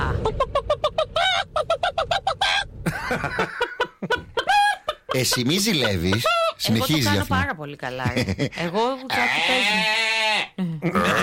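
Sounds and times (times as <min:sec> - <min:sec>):
laughter: 0:00.0 - 0:07.3, 0:07.9 - 0:08.8
speech: 0:05.2 - 0:10.2
person imitating a hen clucking: 0:09.1 - 0:11.2.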